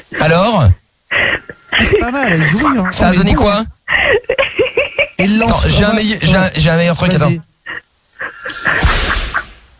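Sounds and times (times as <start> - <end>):
speech: 0.2 - 0.8, 2.0 - 4.3, 5.2 - 7.5
laughter: 1.8 - 5.2, 7.7 - 9.6
whip crack sound effect: 8.8 - 9.5.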